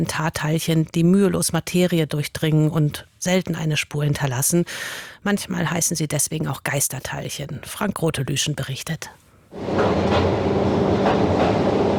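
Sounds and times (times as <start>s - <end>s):
speech: 0.0s - 11.8s
small railway train rolling down an incline into a tunnel: 9.6s - 11.9s.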